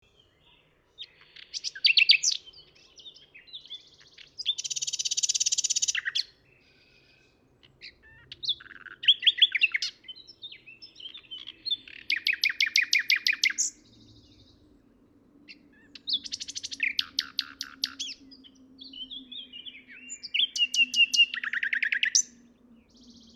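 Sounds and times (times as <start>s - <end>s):
common nightingale singing: 0.2s - 14.7s, 15.4s - 23.3s.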